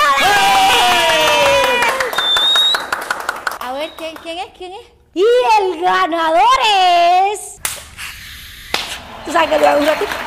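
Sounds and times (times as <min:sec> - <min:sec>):
crowd clapping: 0:00.6 - 0:04.4, 0:08.7 - 0:10.2
speech: 0:04.3 - 0:07.5, 0:09.2 - 0:10.2.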